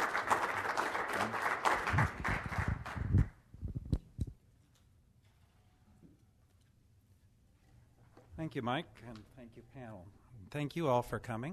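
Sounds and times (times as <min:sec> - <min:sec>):
audience applause for a panel: 0:00.0 - 0:03.3
speech: 0:08.5 - 0:11.5.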